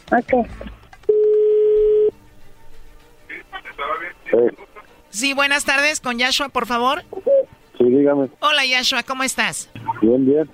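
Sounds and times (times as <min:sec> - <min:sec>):
speech: 0:00.1 - 0:00.8, 0:04.3 - 0:07.2, 0:07.8 - 0:10.5
telephone line ringing tone: 0:01.1 - 0:02.1.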